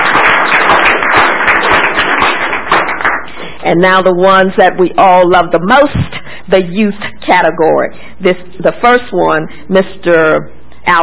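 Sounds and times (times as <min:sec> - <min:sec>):
audience hand clapping: 0:00.0 - 0:03.6
speech: 0:03.6 - 0:11.0.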